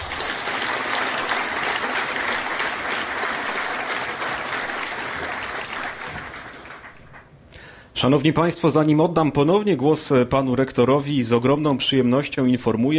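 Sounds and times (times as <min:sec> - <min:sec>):
applause from new students and guests at a technical university matriculation ceremony: 0:00.0 - 0:07.8
speech: 0:08.0 - 0:12.9.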